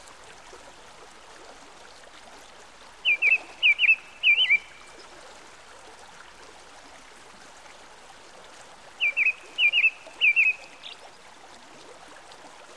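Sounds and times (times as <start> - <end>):
American robin song by a stream: 3.0 - 4.9, 9.0 - 11.0.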